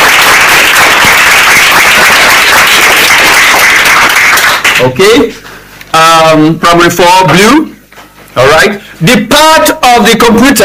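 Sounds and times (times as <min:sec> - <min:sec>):
classroom applause: 0:00.0 - 0:04.9
speech: 0:04.8 - 0:07.7, 0:08.4 - 0:10.6.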